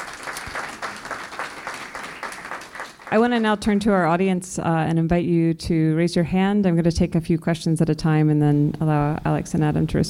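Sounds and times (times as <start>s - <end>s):
audience applause: 0.0s - 4.1s
speech: 3.1s - 10.0s.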